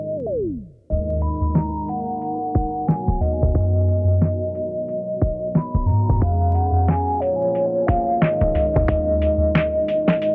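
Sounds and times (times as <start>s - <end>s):
Operator synth beat: 0.2s - 10.3s.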